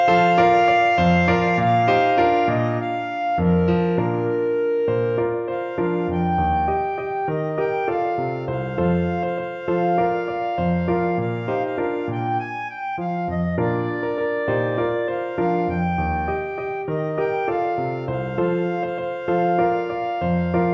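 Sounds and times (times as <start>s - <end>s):
clarinet playing a song: 0.0s - 20.7s.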